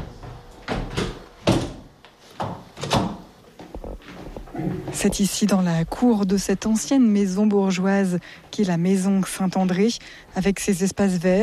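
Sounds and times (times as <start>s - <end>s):
doors being closed: 0.0s - 3.4s
speech: 5.0s - 11.4s.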